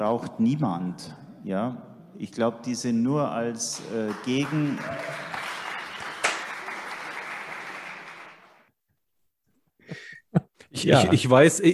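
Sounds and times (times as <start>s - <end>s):
speech: 0.0s - 5.3s, 10.8s - 11.7s
audience applause: 3.8s - 8.7s.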